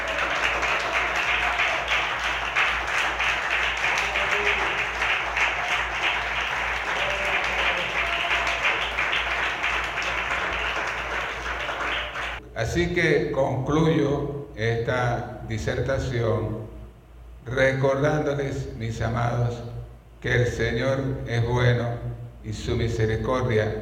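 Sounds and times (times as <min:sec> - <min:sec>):
large crowd applauding: 0:00.0 - 0:12.4
speech: 0:12.8 - 0:16.6, 0:17.5 - 0:23.8.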